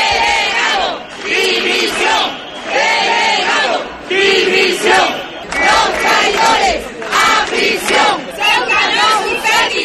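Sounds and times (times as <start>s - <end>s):
crowd of protesters shouting in unison in the streets: 0.0s - 9.8s.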